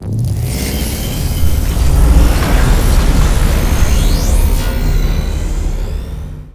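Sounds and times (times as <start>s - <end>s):
energy gathering effect: 0.0s - 6.5s.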